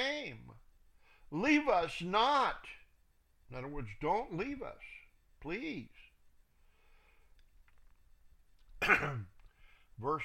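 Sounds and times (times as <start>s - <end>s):
speech: 1.3s - 2.8s, 3.5s - 6.0s, 8.8s - 9.3s, 10.0s - 10.2s
throat clearing on a rough morning: 8.8s - 9.4s.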